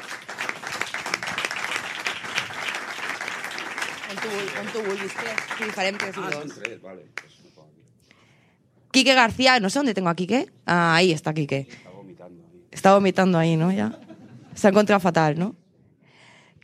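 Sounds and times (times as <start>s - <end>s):
audience applause: 0.0s - 6.8s
speech: 4.1s - 7.4s, 9.0s - 11.8s, 12.8s - 14.0s, 14.6s - 15.6s.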